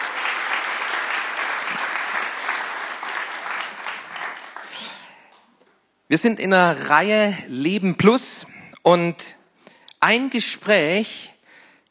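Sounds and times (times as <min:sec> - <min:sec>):
audience applause: 0:00.0 - 0:05.2
speech: 0:06.1 - 0:09.4, 0:10.0 - 0:11.3.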